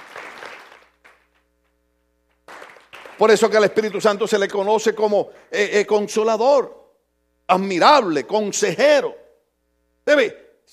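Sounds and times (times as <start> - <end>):
audience applause: 0.0 - 1.4, 2.5 - 4.0
speech: 3.2 - 6.8, 7.5 - 9.2, 10.1 - 10.7.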